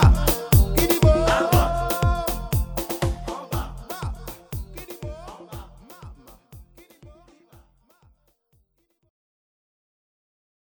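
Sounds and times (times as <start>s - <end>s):
African music: 0.0s - 8.2s.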